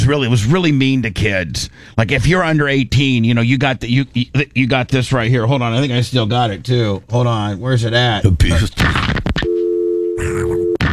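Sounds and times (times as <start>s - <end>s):
speech: 0.1s - 9.2s, 10.2s - 10.7s
phone hang-up sound effect: 9.4s - 10.8s
busy tone: 9.5s - 10.8s.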